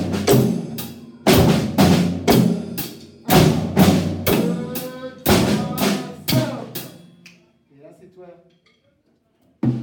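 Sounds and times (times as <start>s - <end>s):
drummers: 0.0s - 7.2s, 9.6s - 9.8s.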